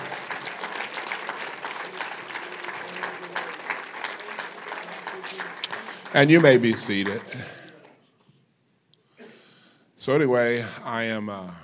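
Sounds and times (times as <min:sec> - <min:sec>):
sustained crowd applause: 0:00.0 - 0:08.0
speech: 0:06.1 - 0:07.6, 0:10.0 - 0:11.6.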